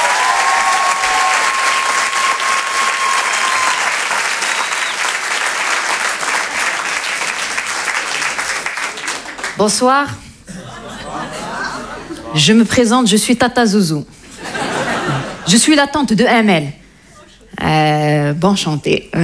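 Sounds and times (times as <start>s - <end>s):
thunderous applause from comedy club audience: 0.0s - 9.6s
speech: 9.6s - 10.3s, 12.4s - 14.2s, 15.5s - 16.8s, 17.6s - 19.2s
laughter: 10.4s - 12.5s, 14.2s - 15.6s.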